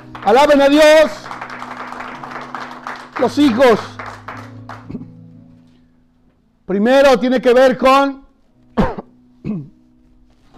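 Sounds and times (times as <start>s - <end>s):
audience clapping: 0.0s - 5.1s
speech: 0.2s - 1.2s, 3.2s - 3.9s, 6.7s - 8.2s.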